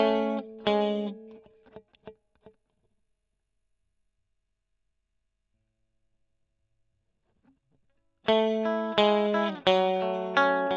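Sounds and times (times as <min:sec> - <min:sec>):
electric guitar: 0:00.0 - 0:02.5, 0:08.2 - 0:10.7.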